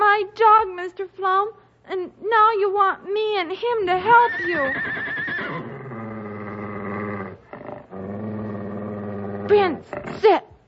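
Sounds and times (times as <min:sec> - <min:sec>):
speech: 0:01.0 - 0:05.1, 0:09.5 - 0:10.6
stallion neighing: 0:04.0 - 0:07.4.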